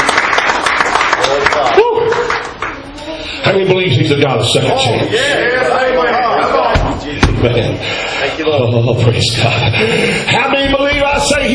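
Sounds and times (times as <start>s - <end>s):
audience hand clapping: 0.0s - 2.8s
speech: 3.6s - 6.1s, 7.0s - 11.5s.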